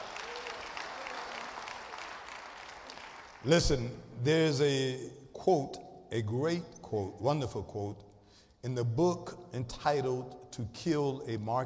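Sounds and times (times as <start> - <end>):
audience clapping: 0.0 - 3.6
speech: 3.4 - 11.6.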